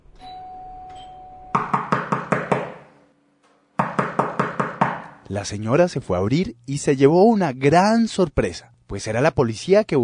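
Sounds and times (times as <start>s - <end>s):
knocking on a door: 1.6s - 2.8s, 3.8s - 5.0s
speech: 5.3s - 10.0s.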